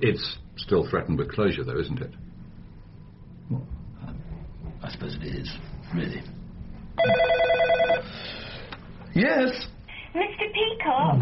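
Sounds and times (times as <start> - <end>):
speech: 0.0 - 2.3, 5.0 - 6.4, 7.0 - 7.4, 9.2 - 11.2
telephone bell ringing in a radio comedy: 7.0 - 8.1.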